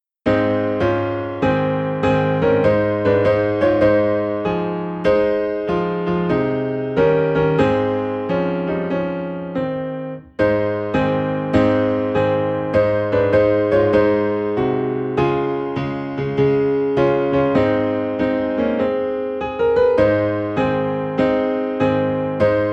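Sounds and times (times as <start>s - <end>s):
piano: 0.2s - 22.7s.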